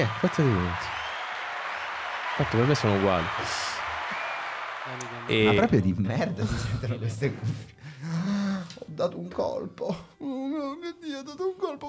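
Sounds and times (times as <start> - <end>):
speech: 0.0 - 0.9, 2.4 - 3.7, 4.9 - 8.2, 8.8 - 11.8
applause sound effect: 0.0 - 5.6.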